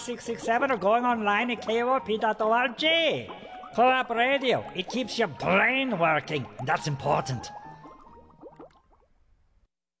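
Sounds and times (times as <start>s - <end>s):
speech: 0.0s - 7.6s
bubbling liquid in a laboratory: 0.0s - 9.6s.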